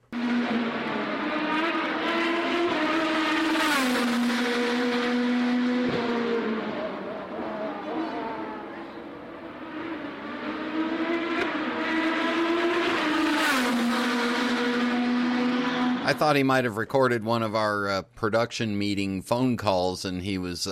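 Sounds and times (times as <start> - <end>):
race cars roaring past on a street circuit: 0.1 - 16.4
speech: 16.1 - 20.7.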